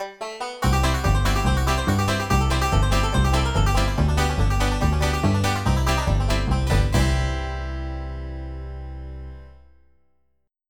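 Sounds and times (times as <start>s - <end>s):
string picking: 0.0s - 9.7s.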